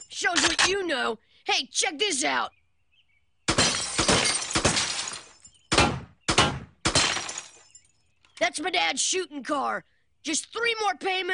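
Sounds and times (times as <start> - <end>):
speech: 0.2 - 2.6, 8.4 - 11.3
glass bottle being hit and shattering: 3.5 - 5.6, 6.8 - 8.0
spray of tinkling glass shards: 3.6 - 5.6, 7.0 - 8.1.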